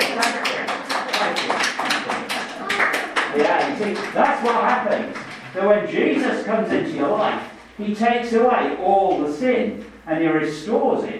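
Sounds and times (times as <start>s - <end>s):
audience applause: 0.0s - 5.5s
speech: 3.8s - 11.1s.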